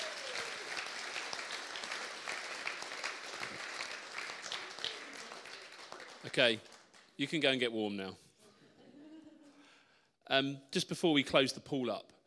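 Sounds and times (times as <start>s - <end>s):
audience applause: 0.0s - 7.1s
speech: 6.2s - 8.2s, 10.3s - 12.1s.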